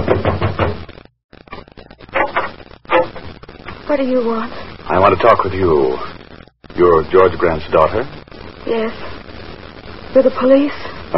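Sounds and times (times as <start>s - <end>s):
knocking on a door: 0.0s - 0.8s
speech: 3.9s - 6.1s, 6.8s - 9.1s, 10.1s - 11.1s.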